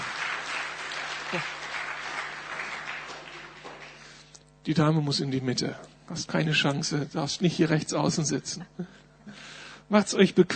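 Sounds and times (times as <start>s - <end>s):
audience applause: 0.0s - 4.3s
speech: 1.3s - 1.6s, 4.7s - 10.5s.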